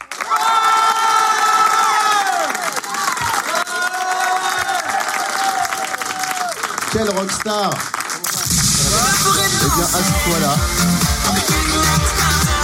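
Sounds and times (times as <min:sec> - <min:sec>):
studio audience cheering and whooping: 0:00.0 - 0:06.7
studio audience applause: 0:00.0 - 0:10.0
speech: 0:07.0 - 0:12.4.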